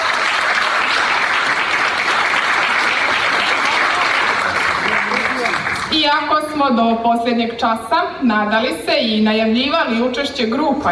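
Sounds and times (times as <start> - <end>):
audience clapping for folk dance groups at a folklore performance: 0.0 - 6.0
speech: 6.1 - 10.9.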